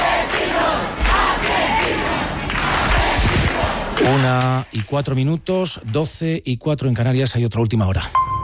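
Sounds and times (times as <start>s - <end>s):
crowd of neighbours shouting and chanting during a street eviction: 0.0s - 4.2s
speech: 4.1s - 8.3s.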